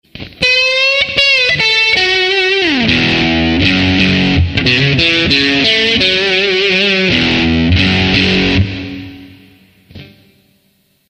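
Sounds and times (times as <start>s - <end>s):
guitar: 0.0s - 11.0s.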